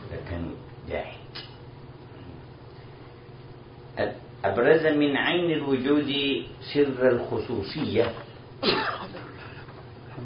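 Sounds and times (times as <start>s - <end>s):
low steady hum: 0.0s - 10.2s
speech: 0.3s - 1.2s, 4.0s - 9.2s
sneeze: 8.6s - 9.3s.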